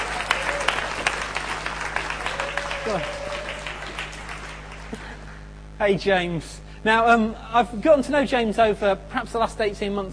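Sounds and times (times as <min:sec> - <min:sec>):
audience applause: 0:00.0 - 0:05.4
speech: 0:02.9 - 0:03.2, 0:05.8 - 0:10.1.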